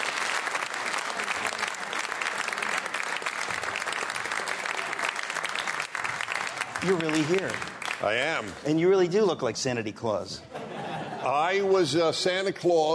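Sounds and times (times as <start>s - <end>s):
audience applauding to welcome Dennis Prager at Socrates in the City: 0.0s - 9.1s
speech: 6.8s - 10.5s, 11.2s - 12.9s
laughter: 10.4s - 12.0s.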